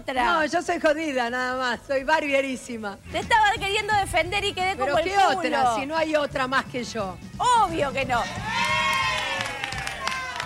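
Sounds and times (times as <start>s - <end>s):
speech: 0.0s - 8.8s
studio audience applauding: 8.4s - 10.4s.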